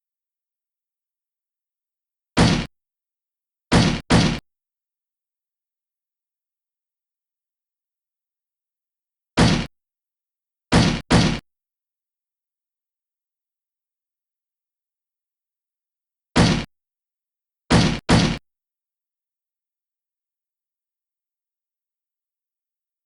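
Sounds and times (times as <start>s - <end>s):
slam: 2.4s - 2.7s, 3.7s - 4.4s, 9.4s - 9.7s, 10.7s - 11.4s, 16.4s - 16.7s, 17.7s - 18.4s.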